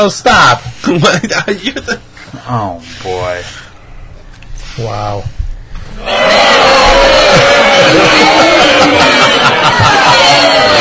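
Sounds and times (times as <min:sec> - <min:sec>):
speech: 0:00.0 - 0:03.7, 0:04.8 - 0:05.4, 0:06.0 - 0:09.2
laughter: 0:00.8 - 0:02.0, 0:06.7 - 0:10.7
studio audience shouting in protest: 0:05.9 - 0:10.7.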